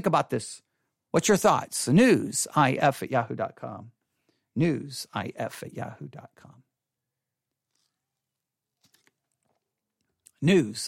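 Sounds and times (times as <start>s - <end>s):
speech: 0.0s - 4.0s, 4.6s - 6.6s, 10.4s - 10.8s
person drinking water: 7.5s - 10.8s
gulps and swallows: 7.6s - 10.8s.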